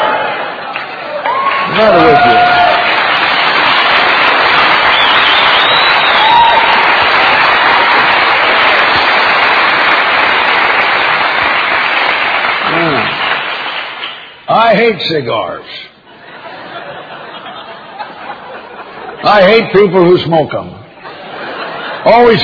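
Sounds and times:
audience applauding: 0.0s - 14.4s
speech: 1.8s - 2.4s, 14.7s - 15.7s, 19.3s - 20.8s, 22.0s - 22.4s
laughter: 16.1s - 19.4s, 20.9s - 22.4s.

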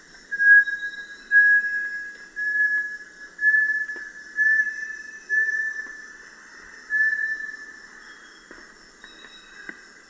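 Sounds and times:
Bartlett's tinamou whistling song: 0.4s - 6.1s, 6.9s - 7.9s.

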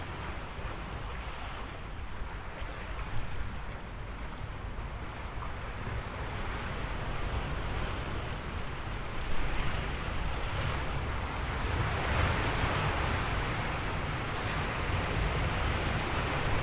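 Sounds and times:
ocean waves: 0.0s - 16.6s.

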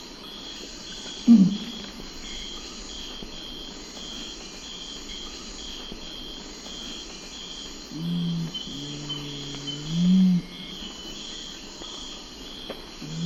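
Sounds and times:
Nocturnal Curassow hooting in the eastern lowlands of South America: 1.2s - 2.0s, 7.9s - 11.0s.

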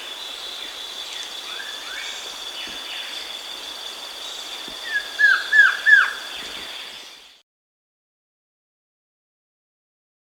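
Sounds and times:
Masked Trogon Trogon personatus calling in the Andes: 4.8s - 6.3s.

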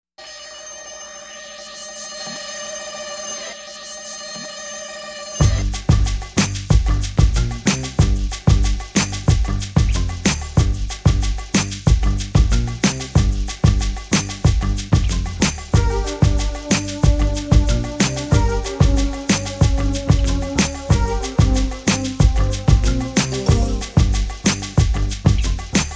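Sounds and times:
reggae instrumental theme: 5.4s - 25.9s.

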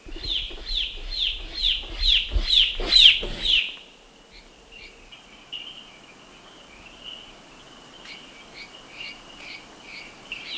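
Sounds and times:
turquoise jay scratchy calls: 0.0s - 3.8s.

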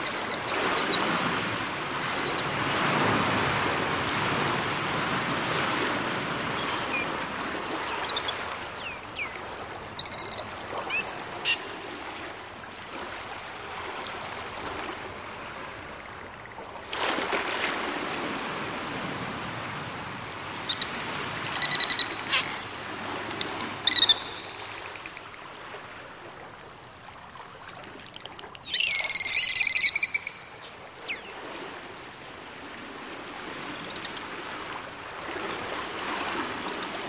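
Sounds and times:
sea waves: 0.0s - 37.0s
dolphins clicking: 20.7s - 25.5s, 27.6s - 30.5s.

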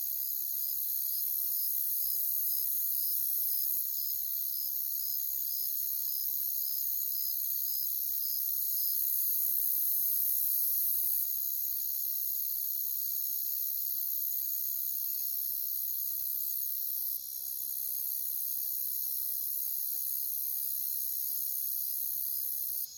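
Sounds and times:
cricket chirps: 0.0s - 22.9s.

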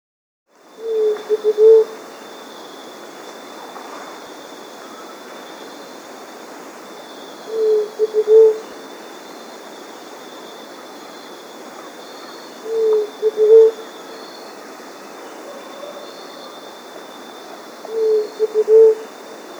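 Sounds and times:
Large-tailed dove cooing: 0.8s - 2.1s, 7.3s - 9.3s, 10.6s - 19.5s.

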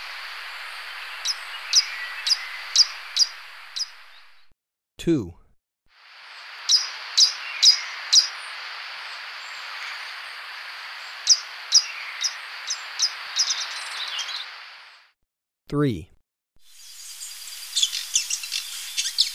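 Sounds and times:
Brown Violetear calling: 0.0s - 4.4s, 6.4s - 14.5s, 16.8s - 19.3s.

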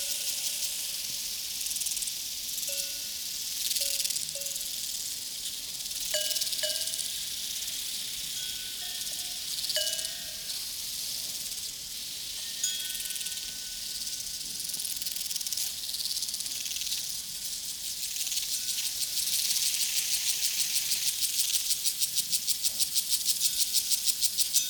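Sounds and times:
cowbells on a prairie: 0.0s - 0.9s, 2.6s - 4.8s, 6.0s - 14.6s, 23.4s - 24.6s
crickets chirping on a prairie: 0.0s - 24.6s.

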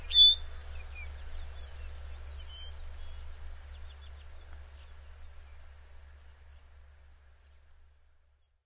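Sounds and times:
Cassin's sparrow in North America: 0.0s - 6.7s.

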